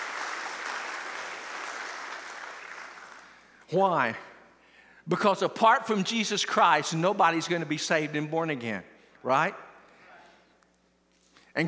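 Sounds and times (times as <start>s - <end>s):
audience hand clapping: 0.0s - 3.6s
speech: 3.7s - 4.3s, 5.1s - 9.6s.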